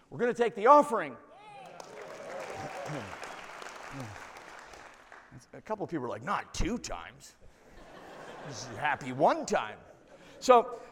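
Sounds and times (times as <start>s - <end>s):
speech: 0.1s - 1.3s, 2.9s - 3.2s, 3.9s - 4.2s, 5.3s - 7.4s, 8.4s - 10.8s
audience clapping: 1.6s - 5.4s
laughter: 7.7s - 9.2s.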